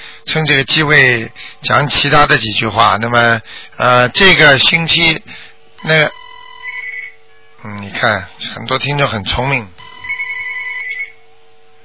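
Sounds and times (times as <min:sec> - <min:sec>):
faint hum: 0:00.0 - 0:11.8
speech: 0:00.4 - 0:06.2, 0:07.6 - 0:09.8
telephone ringing: 0:05.8 - 0:07.5, 0:09.8 - 0:11.2.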